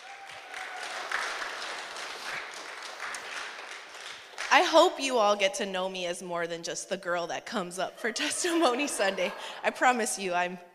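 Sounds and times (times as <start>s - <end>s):
audience applauding: 0.0s - 4.6s
speech: 4.5s - 10.7s
laughter: 8.0s - 9.9s.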